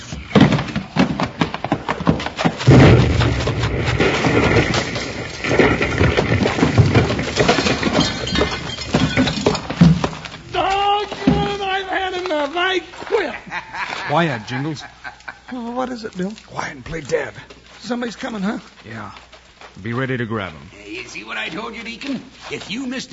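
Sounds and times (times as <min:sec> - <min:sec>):
crashing, rumbling debris from a powder keg explosion: 0:00.0 - 0:19.5
explosion of a keg of blasting powder: 0:02.6 - 0:10.1
glass shattering: 0:02.6 - 0:11.8
person crying out: 0:10.5 - 0:11.6
laughter: 0:12.6 - 0:16.1
speech: 0:14.2 - 0:23.1.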